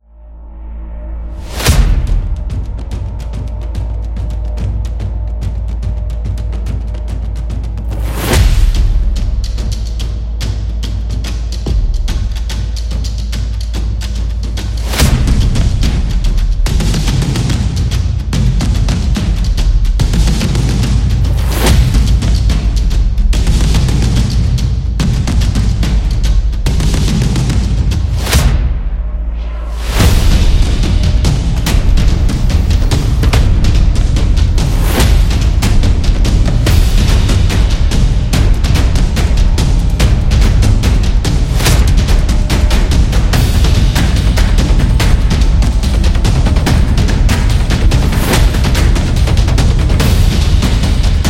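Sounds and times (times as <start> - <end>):
tribal dance music: 1.3 - 51.2.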